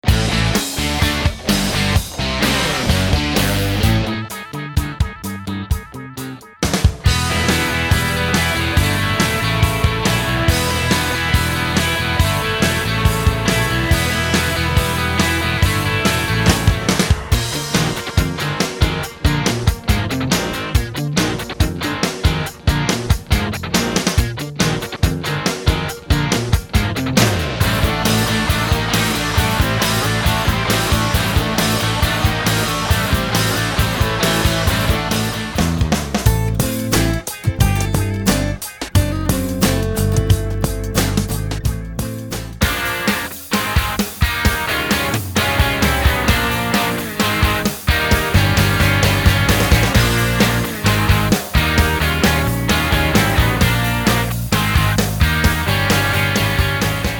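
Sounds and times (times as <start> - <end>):
rock medley: 0.0 - 57.1.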